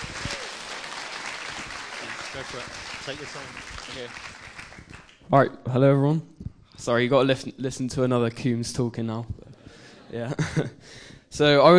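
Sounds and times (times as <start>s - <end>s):
audience applause: 0.0s - 5.2s
speech: 2.4s - 4.3s, 5.3s - 9.4s, 10.1s - 11.7s.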